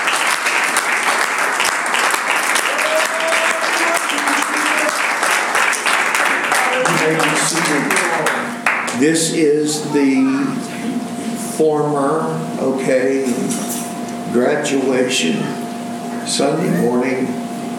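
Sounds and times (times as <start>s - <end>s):
audience hand clap of praise: 0.0s - 9.0s
speech: 9.0s - 13.7s, 14.3s - 15.6s, 16.3s - 17.4s.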